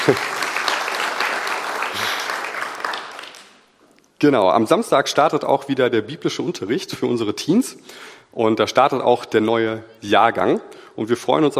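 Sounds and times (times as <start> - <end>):
audience clapping: 0.0 - 3.8
speech: 0.1 - 0.4, 4.2 - 11.5.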